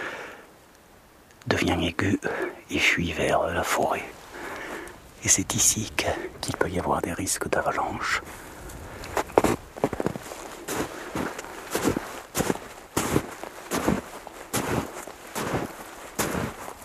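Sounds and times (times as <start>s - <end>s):
faint windy hiss: 0.0s - 16.8s
speech: 1.4s - 4.2s, 5.2s - 8.5s
crunchy footsteps walking up a mountain slope: 8.2s - 16.8s.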